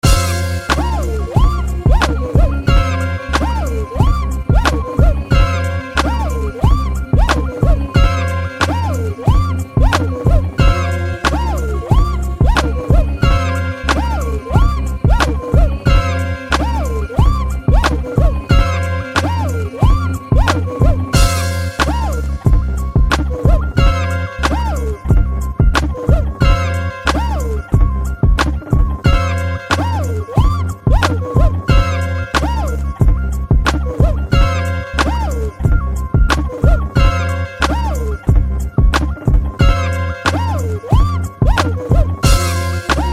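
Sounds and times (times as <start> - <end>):
music beat: 0.0 - 43.1.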